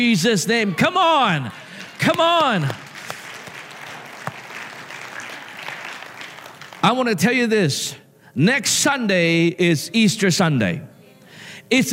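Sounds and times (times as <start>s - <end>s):
speech: 0.0s - 2.8s, 6.8s - 10.9s, 11.7s - 11.9s
audience clapping hands: 1.2s - 7.3s.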